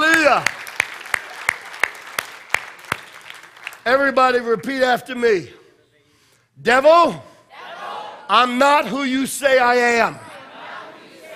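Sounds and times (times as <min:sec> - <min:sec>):
claps at a church worship service: 0:00.0 - 0:04.0
speech: 0:00.3 - 0:00.6, 0:03.9 - 0:05.6, 0:06.6 - 0:07.3, 0:08.3 - 0:10.2.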